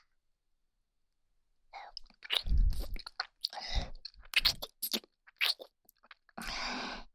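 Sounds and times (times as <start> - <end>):
nipple licking: 1.9 - 6.4
oral sex sounds: 1.9 - 6.9.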